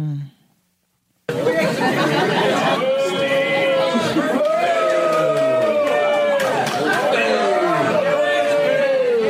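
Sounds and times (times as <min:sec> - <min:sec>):
laughter: 0:01.3 - 0:05.7
crowd booing at a live show: 0:01.3 - 0:09.2
people shouting: 0:02.6 - 0:09.2.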